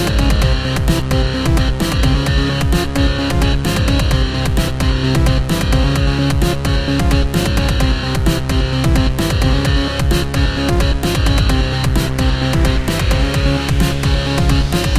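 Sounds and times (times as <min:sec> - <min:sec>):
music: 0:00.0 - 0:14.9.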